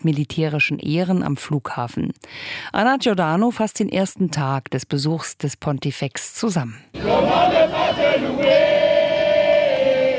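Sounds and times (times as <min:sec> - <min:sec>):
speech: 0:00.0 - 0:08.8
children singing and cheering: 0:07.0 - 0:10.1
crowd noise: 0:07.0 - 0:10.1.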